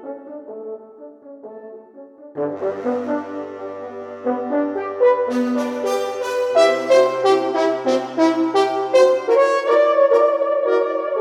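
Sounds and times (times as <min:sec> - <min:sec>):
natural horns: 0:02.4 - 0:11.1.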